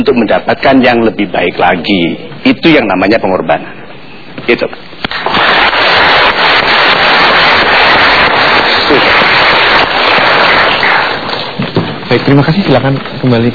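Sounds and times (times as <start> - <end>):
speech: 0.0 - 3.8, 4.5 - 4.9, 12.1 - 13.5
audience applause: 5.1 - 12.2.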